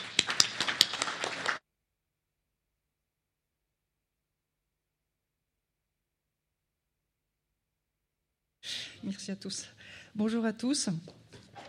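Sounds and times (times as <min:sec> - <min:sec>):
audience applause: 0:00.0 - 0:01.6
speech: 0:09.0 - 0:11.3.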